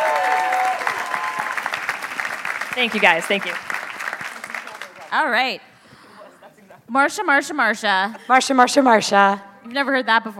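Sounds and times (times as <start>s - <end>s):
audience applause: 0.0s - 5.2s
speech: 2.8s - 3.7s, 5.1s - 5.7s, 6.9s - 10.3s.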